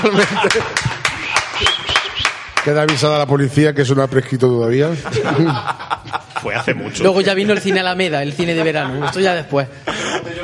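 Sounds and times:
speech: 0.0s - 1.0s, 1.6s - 2.0s, 2.6s - 5.8s, 6.4s - 10.4s
laughter: 0.0s - 2.3s, 4.8s - 10.4s
hand clapping: 0.2s - 3.2s.

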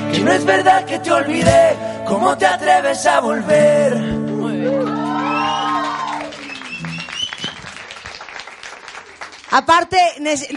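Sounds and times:
speech: 0.1s - 4.8s, 9.5s - 10.5s
studio audience applause after a song: 4.6s - 10.0s.

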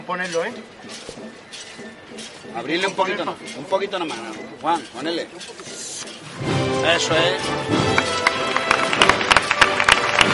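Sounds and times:
speech: 0.1s - 8.4s
crowd in Jerez applauding a procession: 6.7s - 10.3s.

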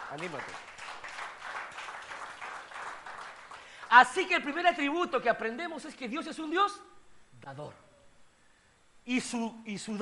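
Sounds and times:
audience applauding: 0.0s - 4.1s
speech: 0.1s - 0.7s, 3.9s - 7.8s, 9.0s - 10.0s.

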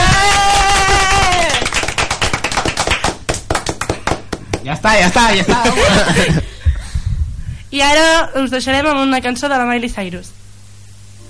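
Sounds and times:
small group applause for the presenter: 0.0s - 5.9s
speech: 4.7s - 6.6s, 7.7s - 10.4s
laughter: 5.0s - 6.8s.

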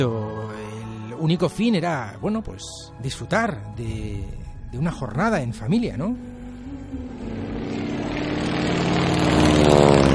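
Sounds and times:
speech: 0.0s - 0.2s, 1.2s - 6.3s
Ford Trimotor propeller airplane engines droning overhead: 6.2s - 10.1s.

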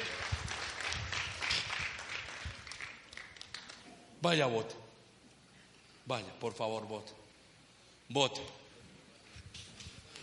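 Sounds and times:
crowd applause: 0.0s - 3.8s
speech: 4.2s - 4.8s, 6.1s - 7.2s, 8.1s - 8.6s.

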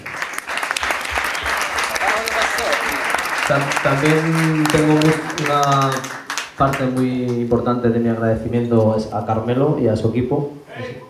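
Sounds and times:
audience applause: 0.0s - 7.4s
speech: 3.5s - 10.9s.

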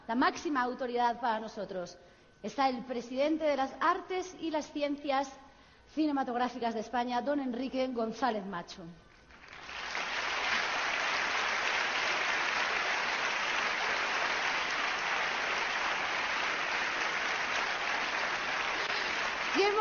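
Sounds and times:
speech: 0.1s - 9.0s
audience ovation, applause: 9.3s - 19.7s.

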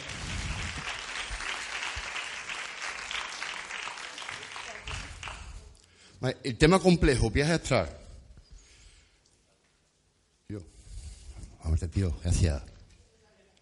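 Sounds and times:
audience applause: 0.0s - 5.7s
speech: 6.2s - 8.0s, 11.7s - 12.7s.

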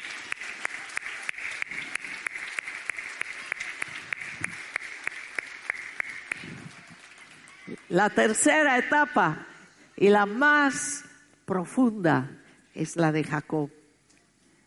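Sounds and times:
audience applauding children: 0.0s - 8.0s
speech: 7.9s - 10.9s, 11.5s - 13.8s.

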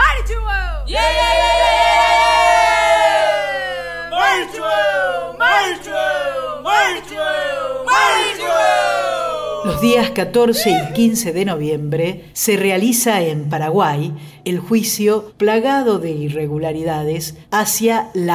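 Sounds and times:
crowd chanting a slogan in unison: 0.9s - 11.0s
speech: 9.7s - 18.3s.

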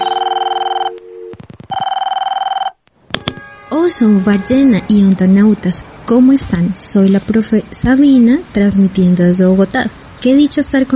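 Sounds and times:
telephone ringing with electronic trilling bursts: 0.0s - 2.8s
speech: 3.8s - 10.9s.

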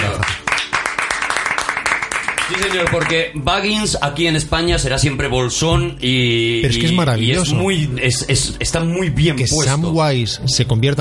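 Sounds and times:
applause: 0.0s - 3.4s
speech: 2.5s - 11.0s.

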